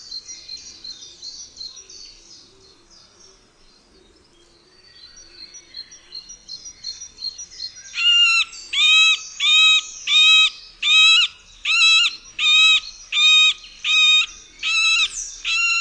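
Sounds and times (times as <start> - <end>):
middle spotted woodpecker uttering nasal squeaky quacking notes: 8.0 - 15.7.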